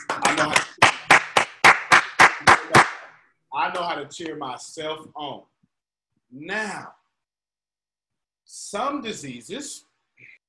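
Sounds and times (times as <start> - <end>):
one person clapping hands: 0.0 - 3.1
speech: 0.4 - 0.7, 3.8 - 5.5, 6.3 - 7.0, 8.5 - 10.4.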